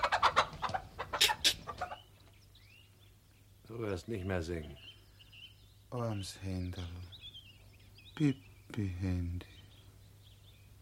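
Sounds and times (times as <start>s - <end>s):
hen clucking: 0.0s - 2.4s
speech: 3.8s - 4.9s, 5.9s - 7.2s, 8.2s - 9.6s.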